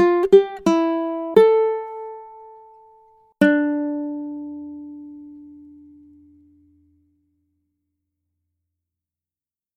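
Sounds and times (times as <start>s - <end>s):
ukulele accompaniment: 0.0s - 6.8s.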